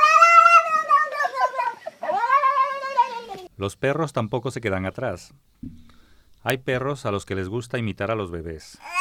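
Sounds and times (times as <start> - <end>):
cat yowling: 0.0 - 3.5
speech: 3.6 - 5.8, 6.4 - 9.0.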